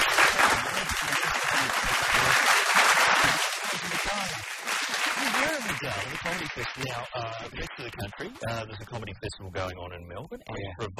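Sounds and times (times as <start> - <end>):
canned applause sound effect: 0.0 - 8.6
speech: 5.8 - 10.9.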